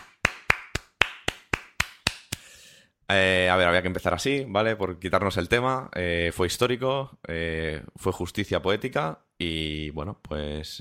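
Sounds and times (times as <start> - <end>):
applause: 0.0 - 2.4
speech: 3.1 - 10.8.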